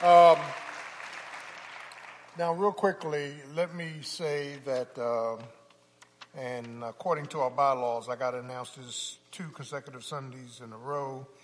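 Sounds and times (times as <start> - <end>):
audience applause: 0.0 - 2.4
speech: 2.4 - 5.6, 6.3 - 11.4.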